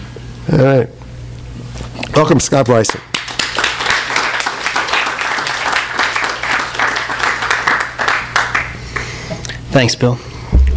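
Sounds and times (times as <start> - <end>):
speech: 0.5 - 1.0, 2.2 - 3.1, 9.7 - 10.3
crowd clapping: 2.8 - 9.1.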